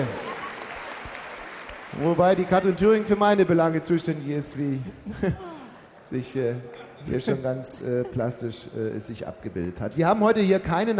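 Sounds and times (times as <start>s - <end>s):
speech: 0.0s - 0.2s, 1.9s - 10.9s
laughter: 0.0s - 0.8s, 4.9s - 5.8s, 6.8s - 8.7s
studio audience applause: 0.0s - 3.7s.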